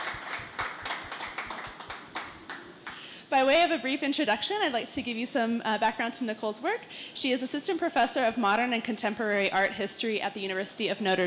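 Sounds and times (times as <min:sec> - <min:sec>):
audience round of applause: 0:00.0 - 0:03.0
speech: 0:03.3 - 0:11.2.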